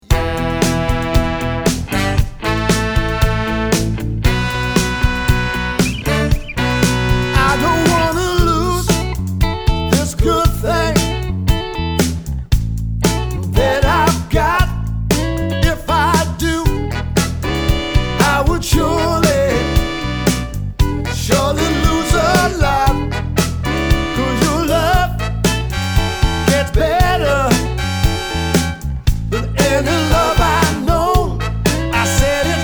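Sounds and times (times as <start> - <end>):
live soul and Motown band playing: 0.0 - 32.6.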